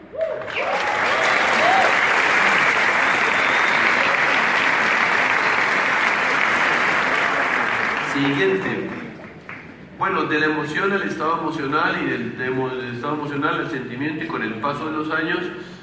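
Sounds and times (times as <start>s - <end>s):
audience applause: 0.1s - 9.8s
speech: 8.2s - 9.0s, 10.0s - 15.7s.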